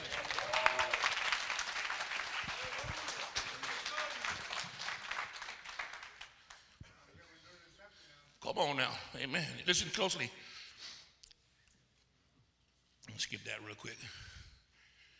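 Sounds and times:
audience clapping: 0:00.0 - 0:06.8
speech: 0:08.5 - 0:10.5.

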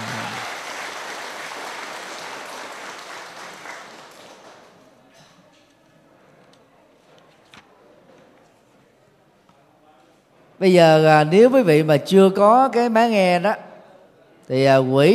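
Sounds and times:
crowd applauding: 0:00.0 - 0:05.0
speech: 0:10.6 - 0:13.7, 0:14.5 - 0:15.1.

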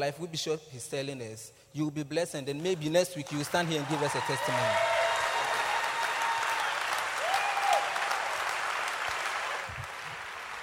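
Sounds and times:
speech: 0:00.0 - 0:05.0
audience clapping hands: 0:02.9 - 0:10.6.

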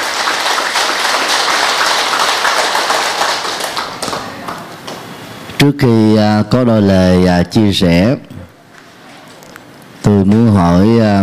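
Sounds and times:
audience applause: 0:00.0 - 0:05.0
speech: 0:05.6 - 0:08.3, 0:10.1 - 0:11.2.

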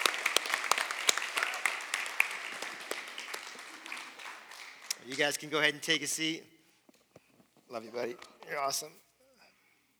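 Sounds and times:
audience clapping hands: 0:00.0 - 0:05.9
speech: 0:05.1 - 0:06.6, 0:07.7 - 0:09.0.

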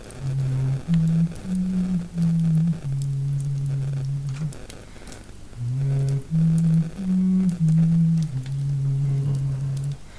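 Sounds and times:
faint hiss: 0:00.0 - 0:10.1
person humming a wordless tune: 0:00.1 - 0:04.7, 0:05.6 - 0:10.1.

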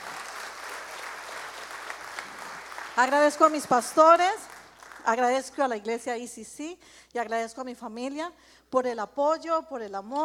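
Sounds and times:
audience applauding: 0:00.0 - 0:05.1
speech: 0:03.0 - 0:10.2.

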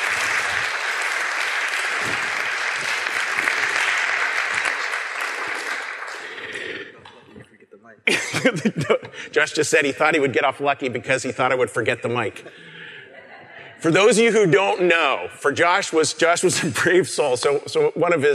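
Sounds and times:
audience applause: 0:00.0 - 0:07.0
laughter: 0:08.1 - 0:09.4, 0:12.2 - 0:14.0
speech: 0:08.1 - 0:12.7, 0:13.8 - 0:18.3.

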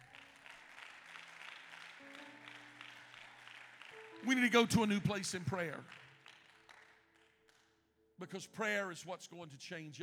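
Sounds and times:
room full of people applauding: 0:00.0 - 0:07.7
speech: 0:04.2 - 0:06.0, 0:08.2 - 0:10.0.

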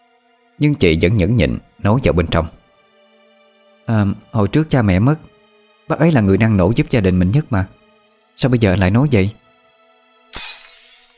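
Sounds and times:
speech: 0:00.6 - 0:02.6, 0:03.9 - 0:05.3, 0:05.9 - 0:07.8, 0:08.4 - 0:09.4
glass shattering: 0:10.3 - 0:11.1.

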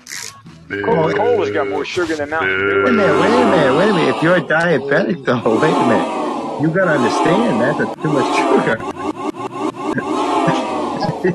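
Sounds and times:
speech: 0:00.7 - 0:09.0
crowd booing: 0:02.4 - 0:11.3
laughter: 0:02.6 - 0:11.3.

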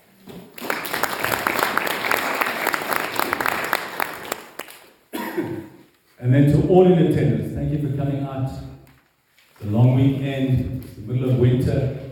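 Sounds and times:
audience at a church pastors and leaders gathering applauding: 0:00.4 - 0:05.0
speech: 0:06.2 - 0:08.7, 0:09.6 - 0:12.0.

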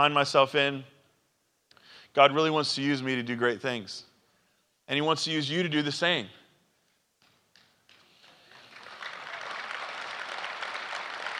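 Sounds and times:
speech: 0:00.0 - 0:00.9, 0:02.1 - 0:04.1, 0:04.9 - 0:06.4
audience applause: 0:08.0 - 0:11.3.

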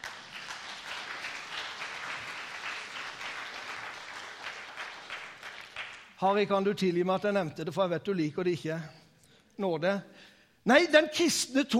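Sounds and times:
audience applause: 0:00.0 - 0:06.1
speech: 0:06.2 - 0:09.0, 0:09.6 - 0:11.7.

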